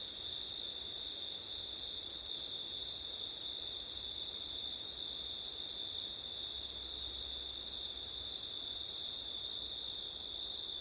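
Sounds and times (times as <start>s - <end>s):
cricket chorus: 0.0s - 10.7s.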